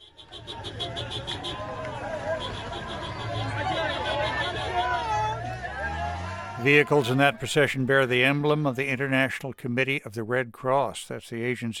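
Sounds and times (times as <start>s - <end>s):
crowd celebratory shouts and cheers: 0.2s - 7.9s
speech: 6.6s - 11.7s.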